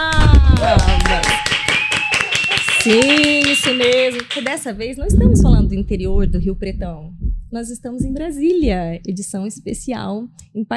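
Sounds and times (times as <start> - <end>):
round of applause: 0.0 - 4.7
speech: 2.8 - 10.7.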